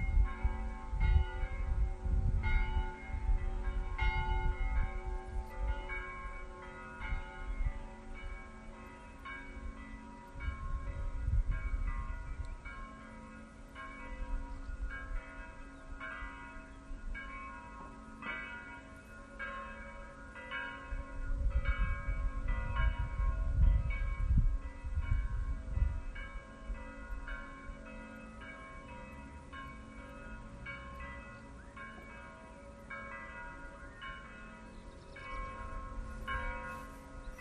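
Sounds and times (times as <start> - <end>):
bells: 0.0 - 37.4.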